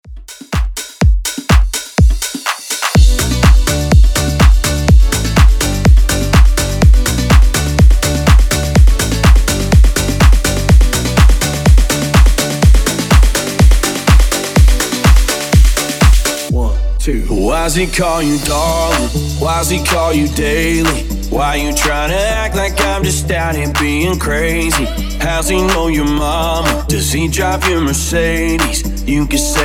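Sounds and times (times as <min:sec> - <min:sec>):
future house music at 124 bpm: 0:00.0 - 0:29.6.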